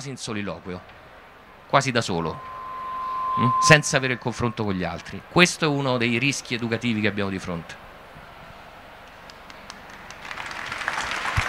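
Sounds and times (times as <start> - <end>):
speech: 0.0 - 1.0, 1.7 - 2.6, 3.4 - 7.8
audience applause: 8.9 - 11.4.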